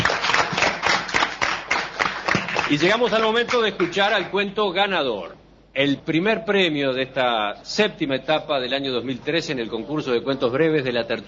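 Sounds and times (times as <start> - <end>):
audience applause: 0.0 - 4.3
speech: 2.7 - 11.2.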